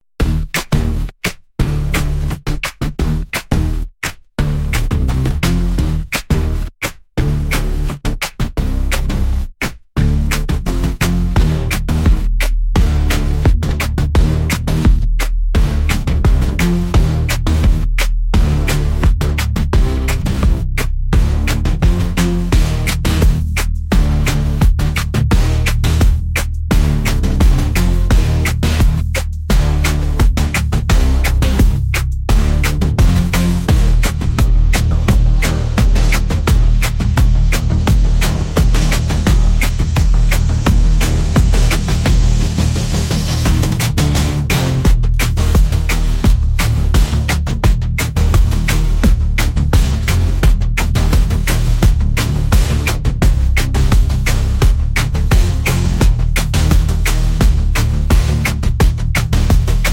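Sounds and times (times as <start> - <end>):
city music beat: 0.0 - 59.9.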